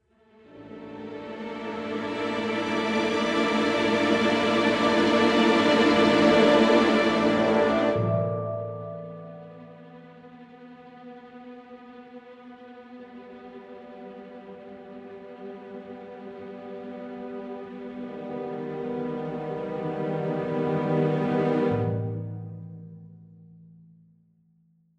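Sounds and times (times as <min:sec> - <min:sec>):
scored music in a bathroom: 0:00.4 - 0:23.2.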